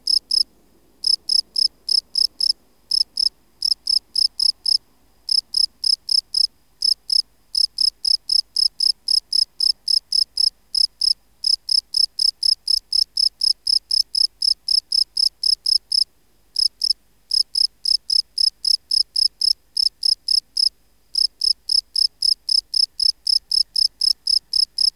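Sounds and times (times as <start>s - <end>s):
field cricket chirping: 0.0s - 0.4s, 1.0s - 16.0s, 16.6s - 24.9s.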